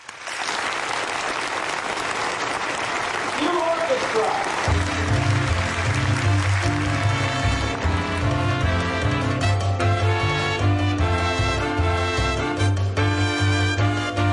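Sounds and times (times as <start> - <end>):
studio audience applause: 0.0 - 9.7
music: 4.6 - 14.3.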